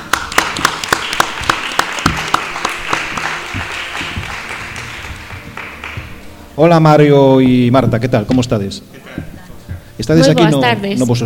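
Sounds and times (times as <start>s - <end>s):
audience applause: 0.0s - 6.3s
speech: 6.6s - 9.3s, 10.0s - 11.2s.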